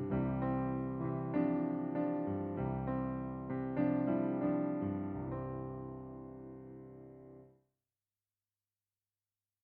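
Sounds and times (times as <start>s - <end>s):
bass: 0.0s - 7.2s.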